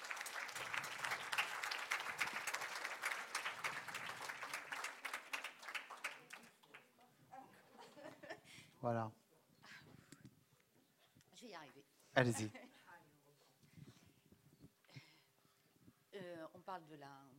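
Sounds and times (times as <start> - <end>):
audience applause: 0.0 - 6.8
speech: 8.8 - 9.2, 11.4 - 12.7, 16.7 - 17.3.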